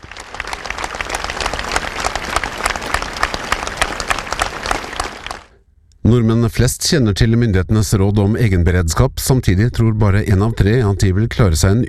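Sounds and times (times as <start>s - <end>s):
crowd applause on Slottsplassen: 0.0s - 5.6s
speech: 6.1s - 11.8s.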